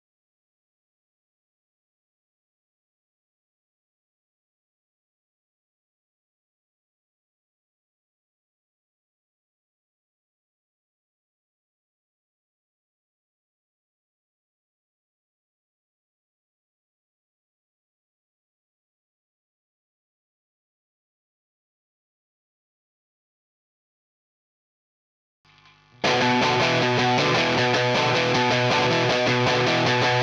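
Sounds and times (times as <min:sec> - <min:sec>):
seven-string guitar: 0:26.0 - 0:30.2.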